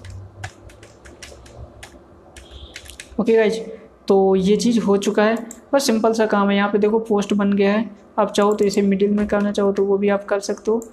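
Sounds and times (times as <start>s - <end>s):
keystrokes on a computer keyboard typing a website name: 0.0s - 3.4s, 5.3s - 5.7s, 8.3s - 10.9s
speech: 3.2s - 10.9s.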